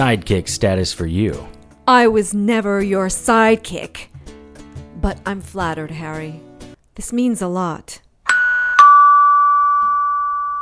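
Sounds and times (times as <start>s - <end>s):
speech: 0.0s - 4.1s, 5.0s - 8.0s
doorbell chiming: 8.3s - 10.5s.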